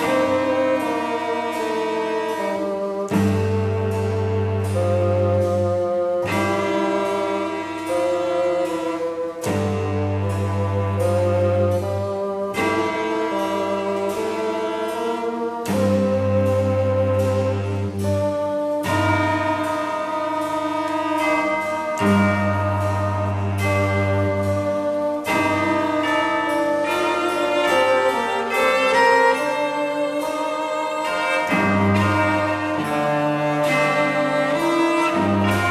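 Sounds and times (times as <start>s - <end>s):
bassoon: 0.0s - 35.7s
violoncello: 0.0s - 35.7s.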